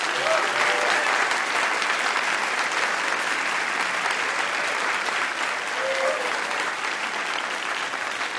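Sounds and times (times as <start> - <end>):
audience applause: 0.0 - 8.3.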